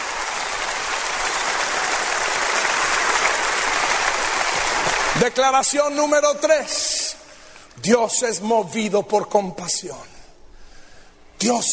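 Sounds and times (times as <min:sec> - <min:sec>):
audience applauding: 0:00.0 - 0:05.8
speech: 0:05.2 - 0:07.0, 0:07.8 - 0:10.2, 0:11.4 - 0:11.7.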